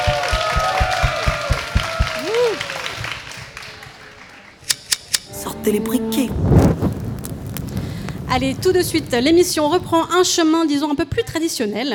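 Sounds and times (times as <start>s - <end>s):
audience applause: 0.0s - 4.6s
speech: 5.6s - 6.6s, 8.3s - 11.9s.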